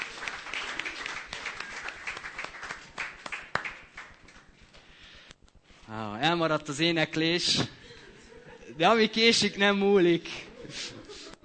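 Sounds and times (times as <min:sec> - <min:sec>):
audience applause: 0:00.0 - 0:04.2
speech: 0:05.9 - 0:07.8, 0:08.8 - 0:11.0.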